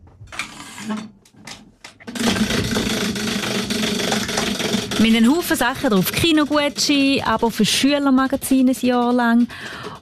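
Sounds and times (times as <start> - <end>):
speech: 0.8 - 1.2, 5.0 - 9.9
prize wheel spinning with rapid clicking: 2.1 - 10.0.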